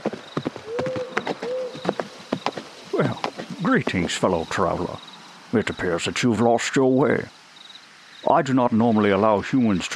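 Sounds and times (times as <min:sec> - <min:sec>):
centaur's hooves clip-clopping on a hard surface: 0:00.0 - 0:04.6
speech: 0:03.0 - 0:07.4, 0:08.2 - 0:09.9.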